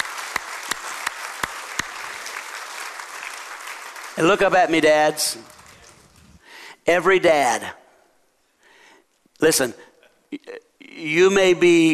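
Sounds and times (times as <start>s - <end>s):
audience applause for fathers: 0.0s - 6.4s
speech: 4.2s - 5.6s, 6.9s - 7.8s, 9.4s - 11.9s.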